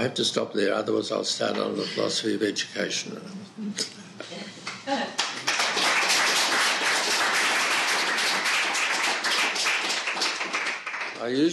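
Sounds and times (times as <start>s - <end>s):
speech: 0.0s - 4.3s, 11.2s - 11.5s
audience clapping: 5.2s - 11.5s.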